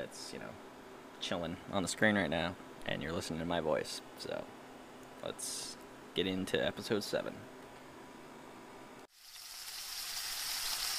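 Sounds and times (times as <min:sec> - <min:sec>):
speech: 0:00.0 - 0:04.6, 0:05.2 - 0:07.6
eggs and bacon sizzling in a frying pan: 0:09.1 - 0:10.9.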